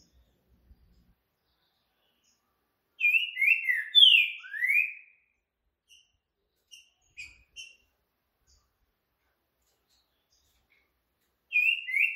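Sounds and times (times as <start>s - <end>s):
green-winged saltator giving a whistled phrase: 3.0s - 5.3s, 11.5s - 12.1s.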